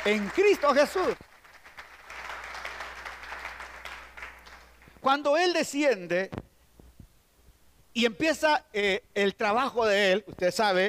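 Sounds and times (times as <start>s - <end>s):
speech: 0.0s - 1.3s, 5.0s - 6.5s, 8.0s - 10.8s
audience clapping: 0.0s - 5.0s.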